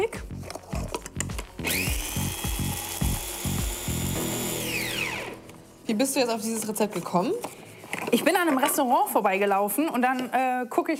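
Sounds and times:
blender grinding pepper and flour: 0.5 - 5.5
speech: 5.9 - 10.9.

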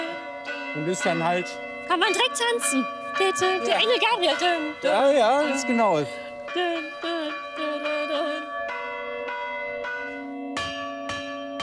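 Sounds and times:
church bells struck by hand with their clappers: 0.0 - 11.6
speech: 0.7 - 7.2.

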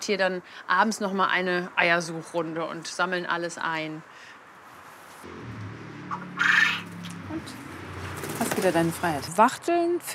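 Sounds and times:
speech: 0.0 - 4.3, 8.6 - 10.1
quails clucking: 6.0 - 7.4.

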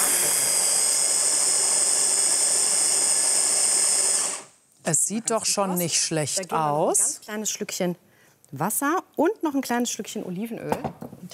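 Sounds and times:
blender mixing capers, tuna and anchovies: 0.0 - 4.6
speech: 4.9 - 11.3.

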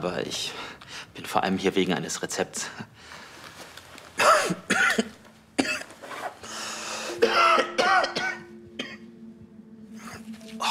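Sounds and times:
speech: 0.0 - 3.2
person coughing: 4.2 - 5.9, 7.1 - 9.0.

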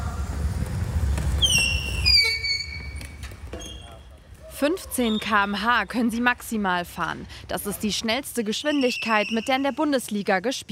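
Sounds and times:
squeaking tyres of electric wheelchairs: 1.1 - 4.2, 8.5 - 9.8
speech: 4.6 - 10.7.

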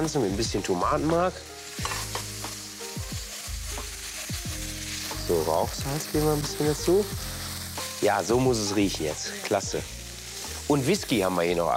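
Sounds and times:
speech: 0.0 - 1.9, 5.3 - 7.3, 8.0 - 10.0, 10.7 - 11.7
spices sizzling while toasting in a hot pan: 0.0 - 11.7
utensil scraping a pan: 1.8 - 2.4.

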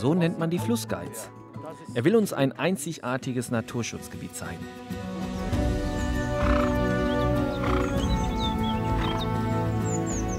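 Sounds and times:
speech: 0.0 - 5.2
birds chirping: 5.3 - 10.3
herd of wild Konik horses neighing: 6.2 - 9.4.

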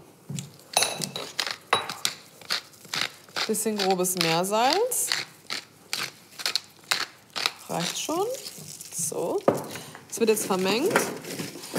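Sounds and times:
pepper mill being turned: 0.7 - 11.0
speech: 3.5 - 5.3, 7.7 - 11.5.

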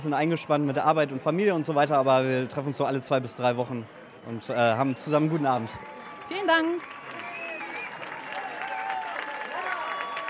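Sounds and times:
speech: 0.0 - 7.0
audience applauding after a song: 4.5 - 10.2
faint whoops: 7.2 - 10.2.

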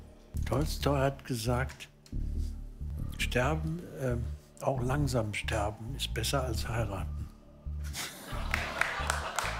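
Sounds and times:
speech: 0.5 - 2.2, 3.2 - 7.2
laughter: 7.9 - 9.5
lone audience member clapping: 8.5 - 9.5.

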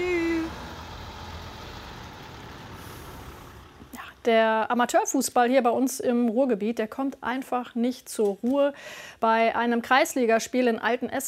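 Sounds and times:
car driving off with engine rumble: 0.0 - 4.8
road noise of a car driving off: 0.0 - 4.9
speech: 4.2 - 11.2.

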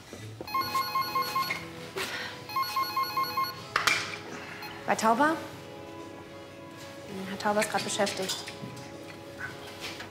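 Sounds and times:
telephone trilling electronic ring: 0.5 - 1.7, 2.5 - 3.7
speech: 4.9 - 5.6, 7.1 - 8.8.

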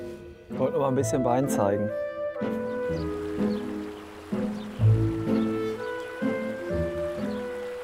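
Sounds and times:
speech: 0.6 - 3.6
recreational paddler's strokes splashing on a quiet river: 3.0 - 7.8.

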